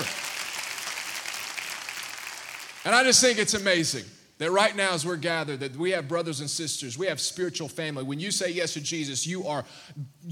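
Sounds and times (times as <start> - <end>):
audience applauding: 0.0 - 3.4
speech: 2.8 - 10.2.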